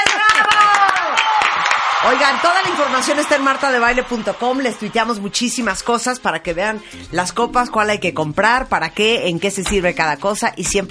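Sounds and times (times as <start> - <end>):
applause: 0.0 - 5.7
speech: 2.0 - 10.8.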